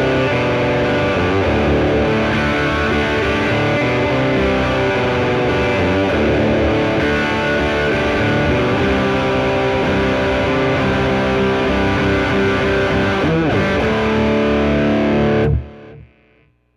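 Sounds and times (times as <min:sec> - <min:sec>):
guitar through a distortion pedal: 0:00.0 - 0:16.7.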